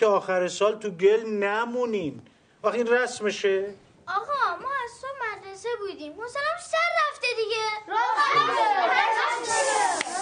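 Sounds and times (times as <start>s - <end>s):
speech: 0.0s - 10.0s
rowdy children making noise in a classroom: 7.3s - 10.1s.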